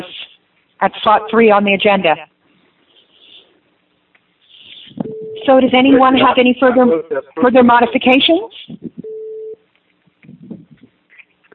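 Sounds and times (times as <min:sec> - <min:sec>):
speech: 0:00.8 - 0:02.3, 0:05.5 - 0:08.9
beeping in the background: 0:04.8 - 0:07.3.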